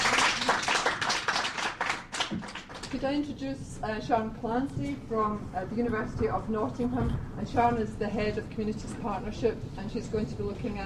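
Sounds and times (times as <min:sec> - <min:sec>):
applause: 0:00.0 - 0:03.0
speech: 0:02.3 - 0:10.8.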